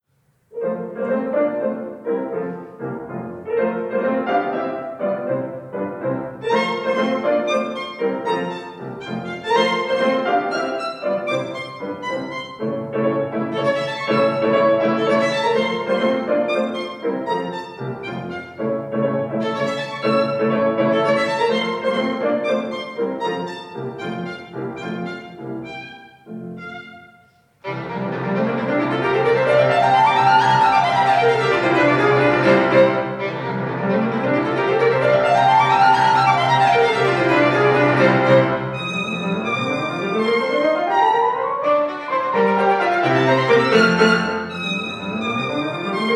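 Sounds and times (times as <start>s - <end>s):
violin and piano sonata scherzo: 0.5s - 46.1s.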